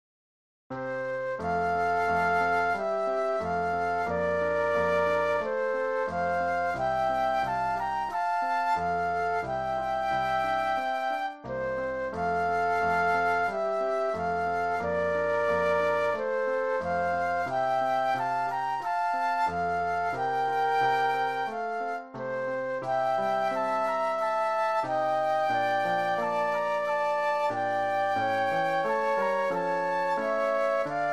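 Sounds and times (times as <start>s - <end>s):
flute duet: 0.7s - 31.1s
piano: 0.8s - 31.1s.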